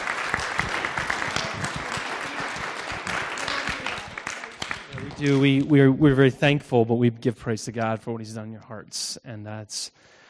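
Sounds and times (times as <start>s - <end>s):
audience applause: 0.0s - 5.7s
speech: 5.2s - 10.2s.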